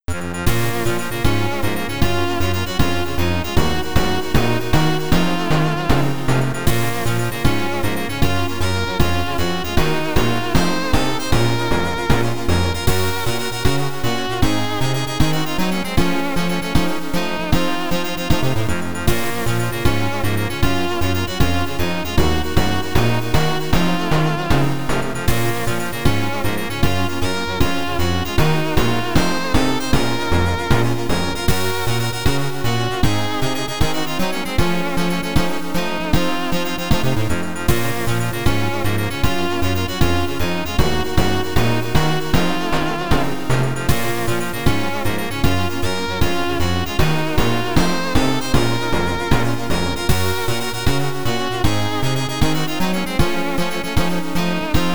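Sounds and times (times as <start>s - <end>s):
background music on YM2608 sound chip: 0.1s - 54.9s.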